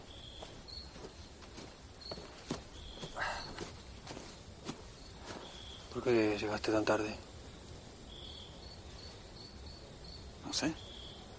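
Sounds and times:
footsteps walking through a forest: 0.0s - 6.0s
chirping insects: 0.0s - 11.3s
speech: 6.0s - 7.3s, 10.6s - 10.9s.

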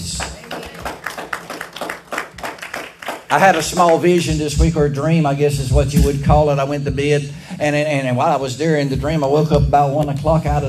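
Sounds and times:
audience clapping hands in praise: 0.0s - 4.6s
speech: 3.3s - 10.6s.

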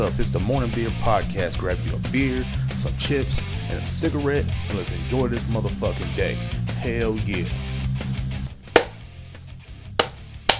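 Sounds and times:
speech: 0.0s - 7.7s
hand clap test for recording sync: 8.8s - 9.0s, 10.0s - 10.5s.

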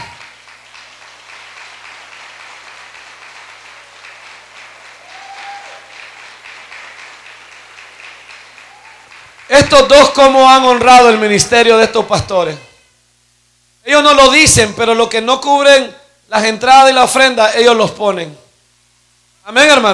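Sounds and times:
audience applauding: 0.0s - 10.2s
speech: 9.5s - 12.7s, 13.8s - 18.4s, 19.4s - 19.9s.

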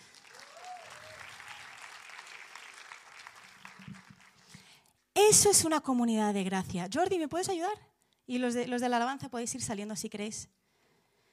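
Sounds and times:
audience applause: 0.0s - 4.7s
voices whooping: 0.3s - 1.8s
speech: 5.3s - 10.6s.

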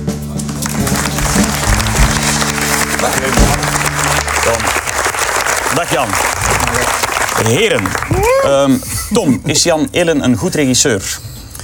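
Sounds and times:
audience applause: 0.4s - 8.6s
speech: 5.8s - 11.4s.

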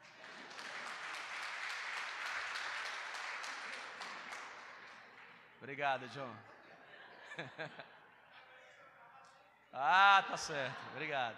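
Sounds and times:
crowd applauding: 0.0s - 5.5s
speech: 5.6s - 6.5s, 7.4s - 7.9s, 9.8s - 11.3s
laughter: 6.4s - 8.4s, 10.0s - 11.3s.

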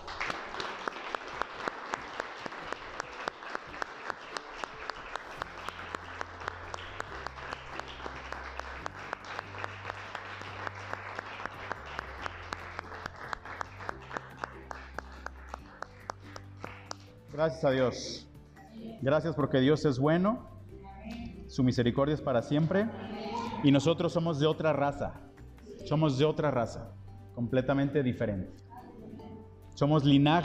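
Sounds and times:
audience applause: 0.0s - 17.0s
speech: 17.4s - 18.2s, 19.0s - 20.5s, 21.6s - 23.0s, 23.6s - 25.2s, 25.8s - 28.6s, 29.8s - 30.4s.

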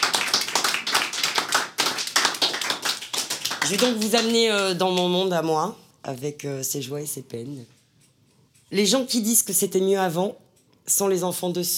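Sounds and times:
crowd applauding: 0.0s - 4.8s
speech: 3.7s - 7.8s, 8.7s - 11.7s.

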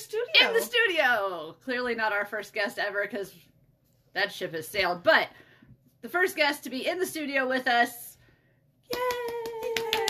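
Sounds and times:
speech: 0.4s - 5.4s, 6.0s - 8.1s, 8.9s - 9.4s
hand clapping applause: 8.9s - 10.0s.

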